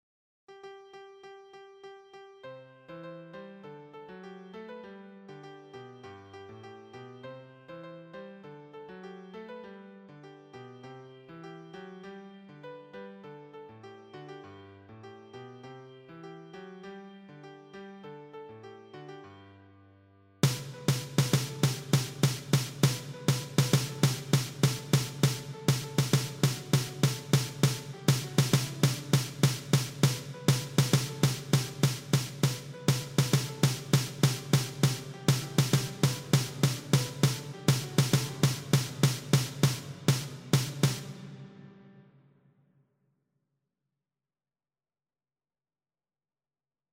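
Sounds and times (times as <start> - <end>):
percussion: 20.4 - 41.2.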